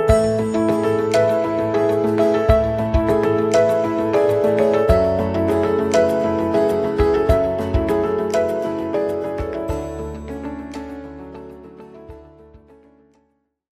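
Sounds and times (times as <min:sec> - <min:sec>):
switchboard hold music: 0:00.1 - 0:12.7.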